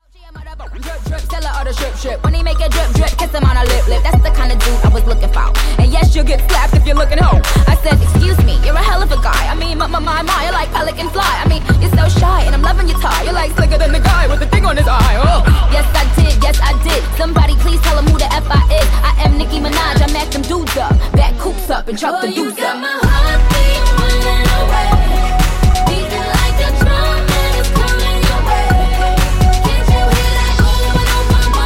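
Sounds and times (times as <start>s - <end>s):
dirty music segue at 127 BPM: 0.4s - 21.8s, 22.7s - 31.6s.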